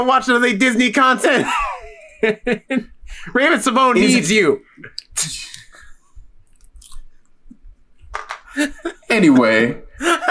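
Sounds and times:
speech: 0:00.0 - 0:05.6, 0:08.6 - 0:10.2
crunchy snack chewing: 0:06.5 - 0:07.1.

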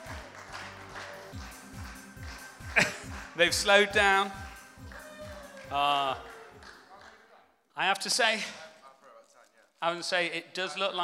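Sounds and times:
audience clapping: 0:00.0 - 0:07.4
speech: 0:02.8 - 0:04.4, 0:05.7 - 0:06.3, 0:07.8 - 0:08.6, 0:09.8 - 0:11.0.

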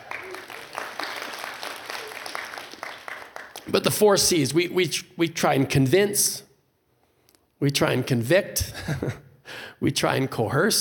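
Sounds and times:
audience cheering: 0:00.0 - 0:03.6
applause: 0:00.0 - 0:03.7
speech: 0:03.7 - 0:06.5, 0:07.6 - 0:09.2, 0:09.8 - 0:10.8.

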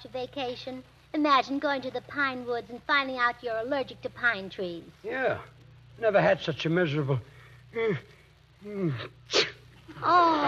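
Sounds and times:
speech: 0:00.1 - 0:10.4
man allergic to pine sneezing: 0:08.7 - 0:09.6.

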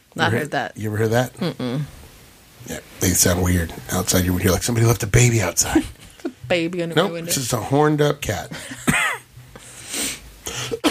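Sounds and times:
speech: 0:00.2 - 0:02.0, 0:02.6 - 0:09.0
raspy coughs: 0:08.7 - 0:09.3, 0:10.5 - 0:10.8.

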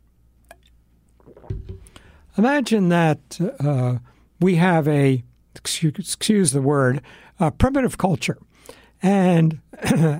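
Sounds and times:
person sipping water: 0:00.5 - 0:02.2
speech: 0:02.4 - 0:10.1.

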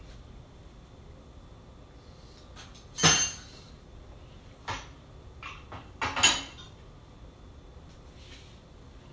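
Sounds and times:
dishes clattering while loading dishwasher: 0:03.0 - 0:03.5, 0:05.4 - 0:06.7.

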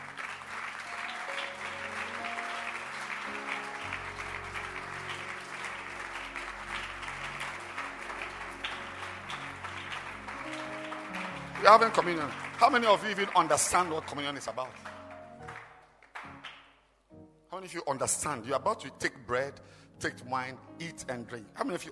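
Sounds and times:
audience clapping hands: 0:00.0 - 0:16.9
speech: 0:11.6 - 0:14.9, 0:17.6 - 0:21.9.

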